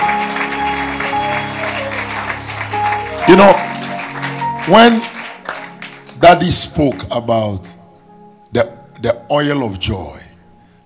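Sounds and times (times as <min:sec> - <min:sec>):
audience clapping: 0:00.0 - 0:07.2
speech: 0:03.3 - 0:03.7, 0:04.7 - 0:05.1, 0:06.2 - 0:07.8, 0:08.5 - 0:10.2.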